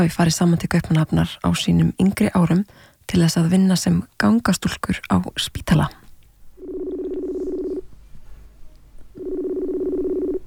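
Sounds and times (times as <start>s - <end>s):
speech: 0.0s - 6.0s
ringing tone of an outgoing internet voice call through a messaging app: 6.6s - 7.9s, 9.1s - 10.4s.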